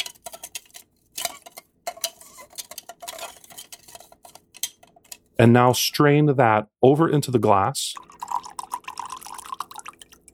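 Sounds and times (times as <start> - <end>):
bar spoon stirring ice in a cocktail shaker: 0.0 - 5.4
speech: 5.4 - 8.1.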